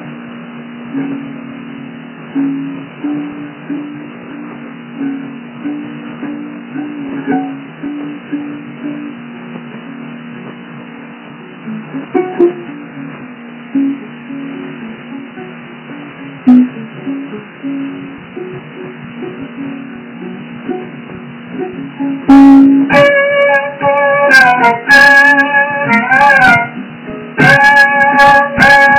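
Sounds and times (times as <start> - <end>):
violin playing concerto in a home recording: 5.7 - 9.1, 11.7 - 13.1, 16.5 - 28.9.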